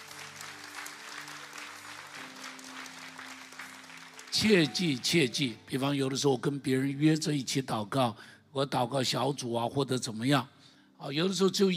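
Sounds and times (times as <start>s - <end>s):
audience applause: 0.0s - 5.0s
speech: 4.4s - 11.7s.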